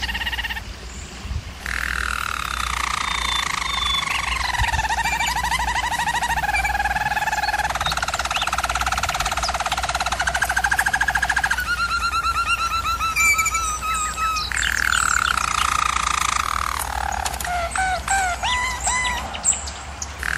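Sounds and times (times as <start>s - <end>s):
German Roller canary singing rolling trills: 0.0s - 20.3s.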